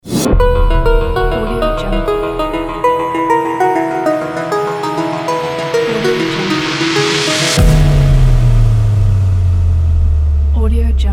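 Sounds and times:
science logo sting: 0.1s - 10.4s.

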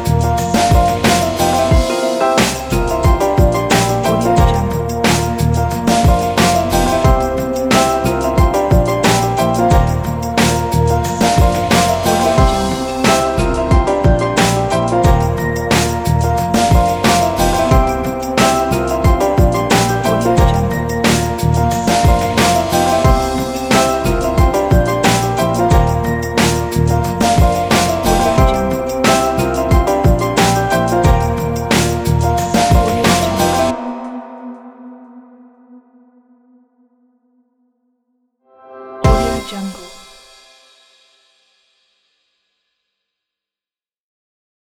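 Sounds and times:
chill jazz hip hop music: 0.0s - 34.2s, 39.0s - 40.0s.

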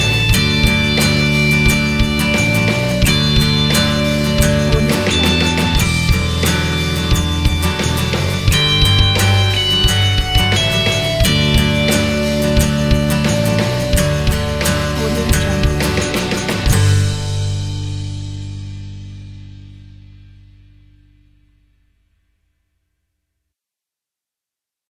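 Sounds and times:
acoustic indie uplifting rock guitar music: 0.0s - 19.8s.

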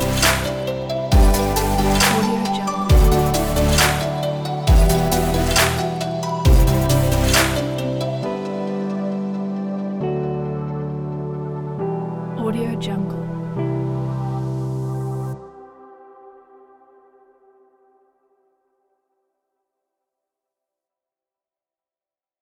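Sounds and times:
upbeat background music: 0.0s - 15.6s.

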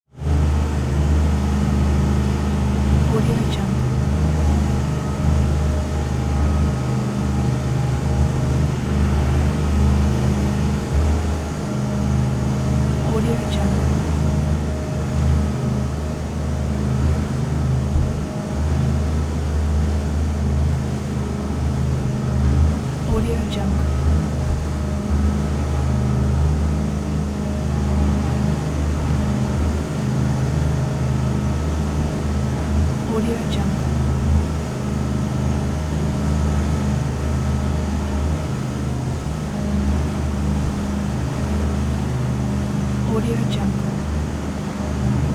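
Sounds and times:
1977 Chris Craft twin engine fishing boat: 0.0s - 45.3s.

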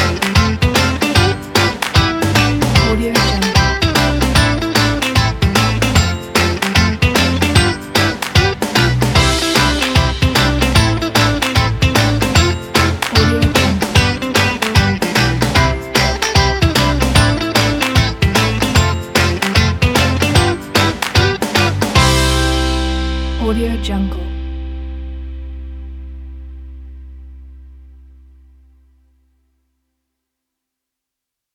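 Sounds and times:
sunny positive happy background music: 0.0s - 24.9s.

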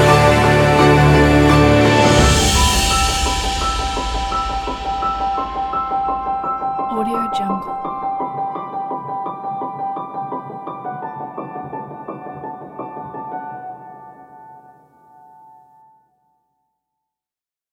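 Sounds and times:
orchestral soundscape: 0.0s - 8.1s.

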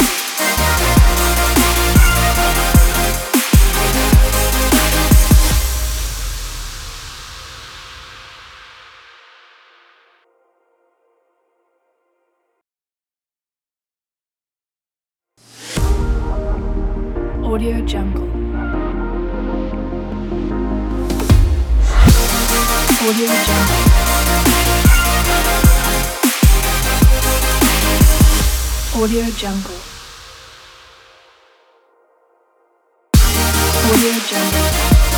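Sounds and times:
summer future bass music: 0.0s - 7.0s, 15.8s - 30.2s, 33.2s - 35.1s.

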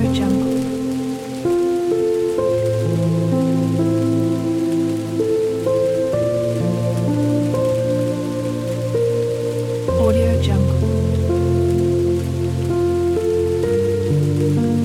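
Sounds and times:
rain: 0.0s - 14.8s
soft relaxing piano: 0.0s - 14.8s.

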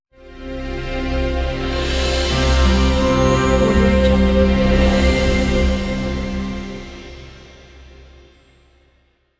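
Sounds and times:
logo intro jingle: 1.8s - 8.3s.

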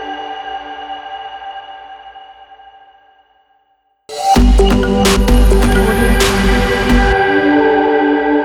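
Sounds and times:
futuristic logo ident jingle: 4.4s - 8.3s.

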